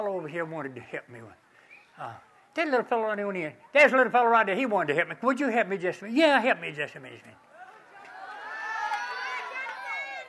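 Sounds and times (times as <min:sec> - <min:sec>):
speech: 0:00.0 - 0:07.5
crowd cheering and shouting: 0:07.4 - 0:10.2.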